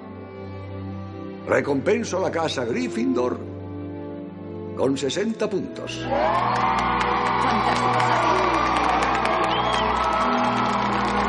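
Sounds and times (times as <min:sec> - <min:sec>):
speech: 0:01.5 - 0:03.5, 0:04.8 - 0:09.0
large crowd applauding: 0:05.9 - 0:11.2.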